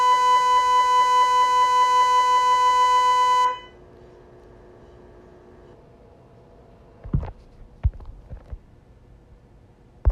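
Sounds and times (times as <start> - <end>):
MRI scanner sounds: 0.0 - 5.9.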